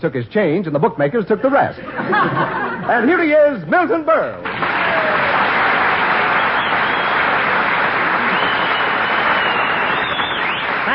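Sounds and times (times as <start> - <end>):
speech: 0.0 - 5.2
laughter: 1.4 - 3.1
crowd applause: 4.4 - 10.9
audience whistles: 6.2 - 7.4, 8.2 - 10.9.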